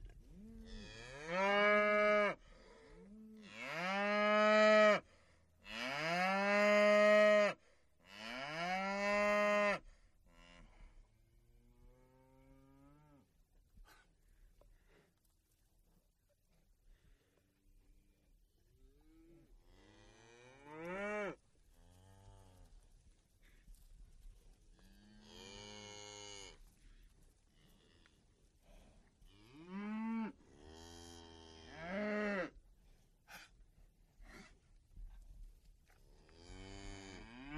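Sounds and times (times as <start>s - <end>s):
field of cows grazing: 0.0s - 37.5s.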